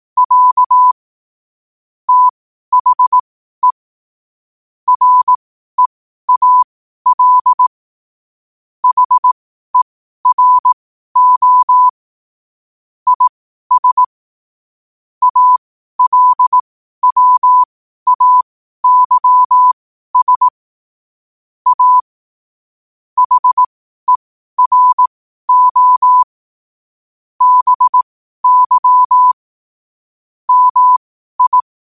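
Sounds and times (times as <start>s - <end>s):
morse code at 5 wpm: 0.2s - 1.0s, 2.1s - 3.8s, 4.9s - 7.7s, 8.8s - 9.4s, 10.2s - 12.0s, 13.1s - 14.1s, 15.2s - 20.6s, 21.7s - 22.1s, 23.2s - 26.3s, 27.4s - 29.4s, 30.5s - 31.9s.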